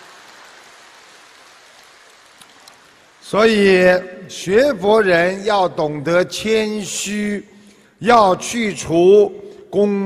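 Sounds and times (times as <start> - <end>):
audience applause: 0.0 - 3.3
speech: 3.3 - 10.0.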